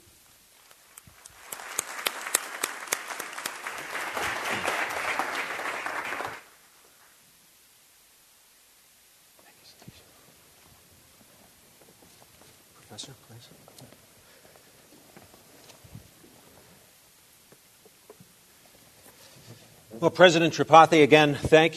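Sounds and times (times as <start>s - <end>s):
audience applause greeting a professor: 0.8s - 6.6s
speech: 13.0s - 14.0s, 20.0s - 21.7s.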